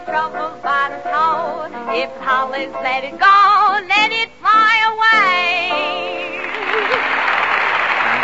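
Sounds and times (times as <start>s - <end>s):
speech: 0.1s - 6.1s
audience applause at an amateur singing contest: 6.3s - 8.2s.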